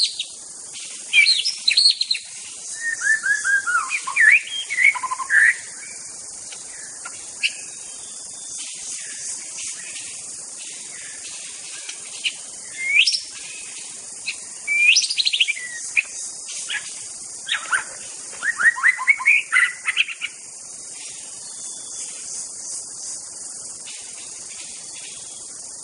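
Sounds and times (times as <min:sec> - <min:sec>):
White-rumped shama song of fluty whistles in a forest: 0:01.1 - 0:05.8, 0:12.2 - 0:16.8, 0:17.4 - 0:20.4.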